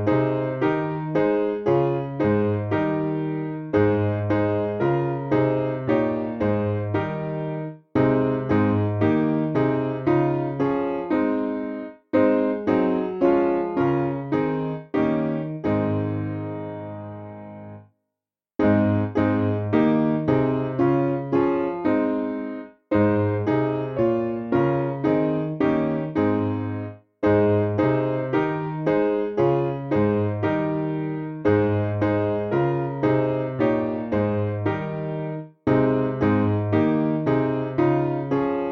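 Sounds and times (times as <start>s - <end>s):
hymn played on piano: 0.0s - 17.9s, 18.6s - 38.7s.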